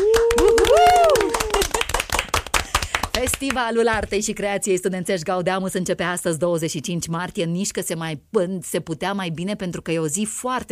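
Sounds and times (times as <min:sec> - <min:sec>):
audience applause: 0:00.0 - 0:03.2
speech: 0:03.2 - 0:10.6.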